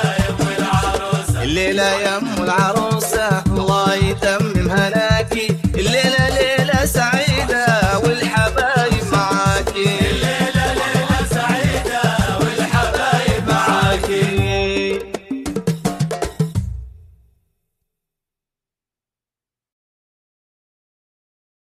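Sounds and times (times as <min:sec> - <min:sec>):
daf frame drums in a lively wedding procession without music: 0:00.0 - 0:17.2.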